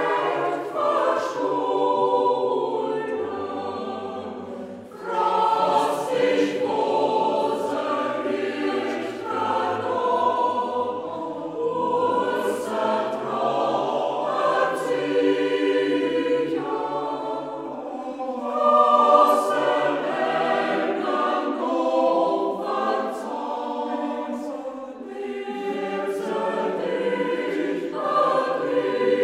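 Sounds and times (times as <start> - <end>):
Transylvanian Saxon choir singing in the Hermannstadt dialect: 0.0 - 29.2.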